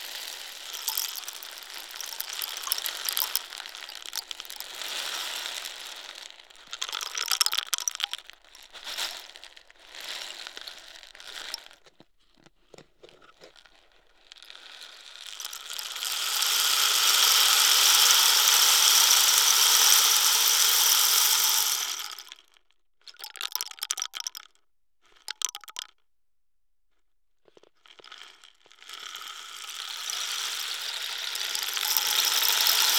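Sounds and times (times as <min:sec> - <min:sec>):
African rain stick: 0:00.0 - 0:09.4, 0:15.2 - 0:22.4, 0:23.2 - 0:24.5, 0:25.3 - 0:25.9, 0:28.9 - 0:32.9.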